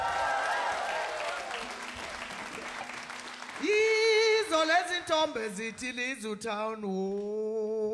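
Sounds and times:
audience applause at a live concert: 0.0 - 5.6
speech: 5.2 - 7.8.

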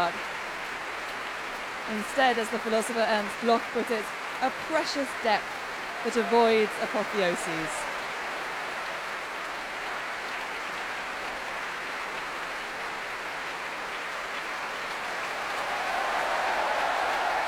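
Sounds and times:
large concert hall audience applauding: 0.0 - 17.4
speech: 1.9 - 7.8
faint cheer from concert hall audience: 4.8 - 11.1, 14.8 - 17.4.

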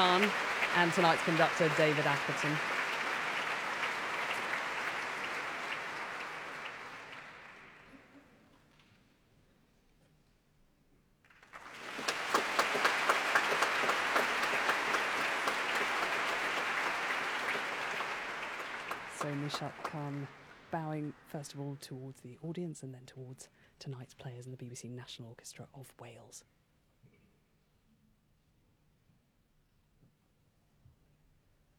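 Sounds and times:
speech: 0.0 - 2.8, 19.5 - 26.5
warm concert hall applause: 0.0 - 8.1, 11.3 - 21.8.

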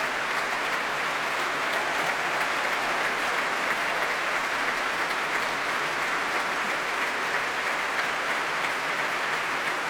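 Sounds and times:
concert hall audience applauding: 0.0 - 9.8.

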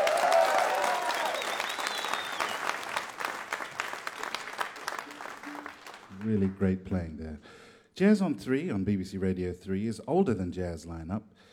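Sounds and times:
audience applause: 0.0 - 6.7
speech: 6.2 - 11.5.

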